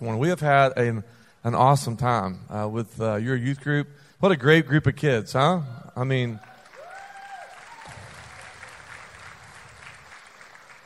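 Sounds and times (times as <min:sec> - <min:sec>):
speech: 0:00.0 - 0:06.5
faint audience applause for a youth group: 0:06.3 - 0:10.8.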